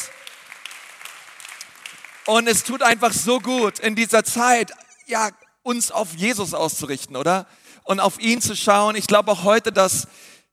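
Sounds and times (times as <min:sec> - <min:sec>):
audience applause: 0:00.0 - 0:04.7
speech: 0:02.3 - 0:10.4.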